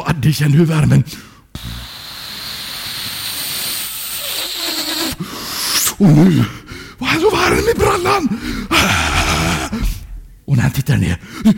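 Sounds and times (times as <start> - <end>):
speech: 0.2 - 1.7, 6.0 - 9.1, 10.6 - 11.5
hair dryer blowing: 1.6 - 5.0.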